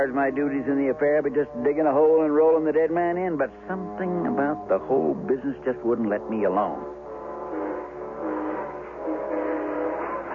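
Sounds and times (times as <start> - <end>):
speech: 0.0 - 7.0
eastbound train: 7.5 - 10.3.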